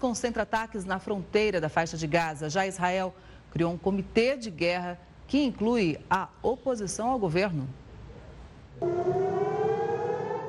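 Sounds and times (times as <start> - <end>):
speech: 0.0 - 7.8, 8.8 - 9.2
air raid warning siren wailing: 8.8 - 10.4.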